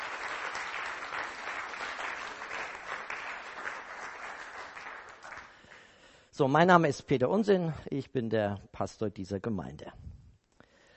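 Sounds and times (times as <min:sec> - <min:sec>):
audience applause: 0:00.0 - 0:05.9
speech: 0:06.4 - 0:10.0.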